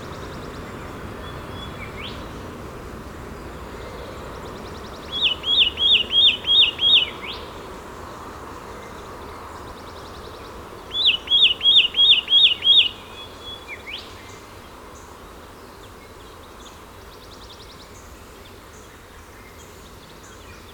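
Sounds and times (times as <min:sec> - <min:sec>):
Satin flycatcher Myiagra cyanoleuca calls: 0:04.4 - 0:07.7, 0:10.9 - 0:14.4.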